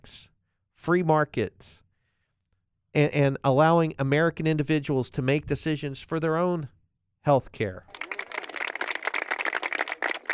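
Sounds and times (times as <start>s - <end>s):
speech: 0.8s - 1.8s, 2.9s - 8.0s
golf clap sound effect: 7.9s - 10.3s.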